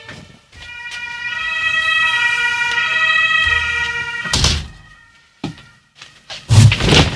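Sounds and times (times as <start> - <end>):
fire truck sirens from a fire station next door: 0.5 - 6.2.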